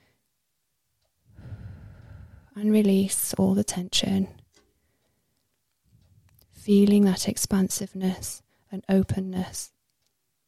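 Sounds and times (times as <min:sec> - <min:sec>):
deep breath in: 0:01.3 - 0:02.6
speech: 0:02.6 - 0:04.4, 0:06.6 - 0:09.8.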